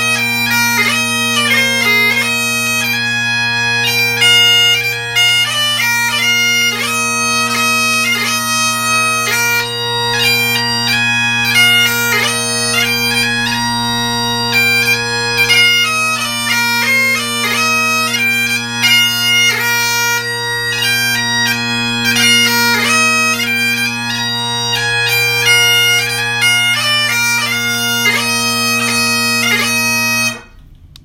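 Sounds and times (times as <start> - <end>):
bagpipes and drums playing a march: 0.0 - 30.4.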